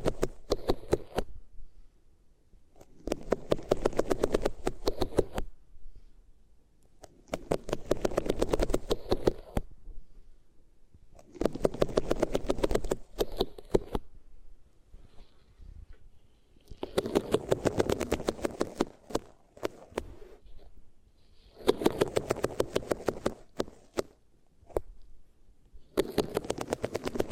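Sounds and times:
ears being rubbed against different materials, scratchy rustling: 0.0s - 1.3s, 2.8s - 5.5s, 7.2s - 9.7s, 11.2s - 14.0s, 14.9s - 25.0s, 25.8s - 27.3s.

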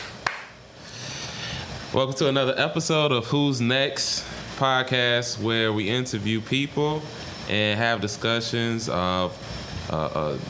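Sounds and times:
hand clap to start recording: 0.0s - 0.6s
steady low hiss: 0.0s - 10.4s
speech: 1.9s - 10.4s.

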